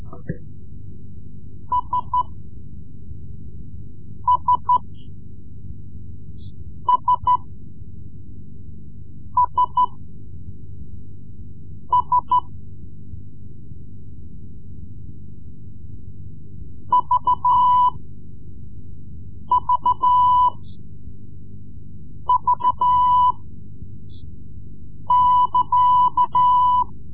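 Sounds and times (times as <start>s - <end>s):
Morse code lessons: 1.7s - 2.3s, 4.3s - 5.0s, 6.9s - 7.4s, 9.4s - 10.0s, 11.9s - 12.5s, 16.9s - 18.0s, 19.5s - 20.6s, 22.3s - 23.4s, 25.1s - 26.9s.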